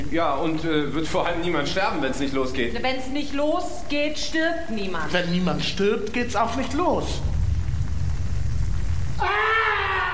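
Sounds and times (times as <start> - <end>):
speech: 0.1 - 7.3, 9.2 - 9.6
low rumble: 6.3 - 10.1
dramatic scream: 9.2 - 10.1.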